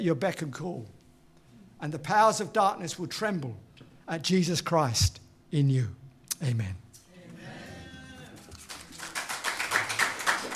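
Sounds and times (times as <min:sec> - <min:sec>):
speech: 0:00.0 - 0:01.0, 0:01.8 - 0:06.8
audience clapping: 0:08.2 - 0:10.5.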